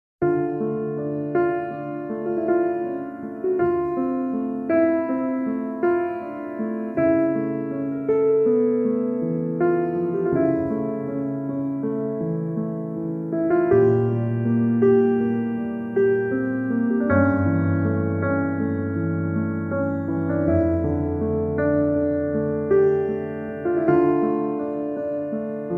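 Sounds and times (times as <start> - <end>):
solitary piano piece: 0.2 - 25.7.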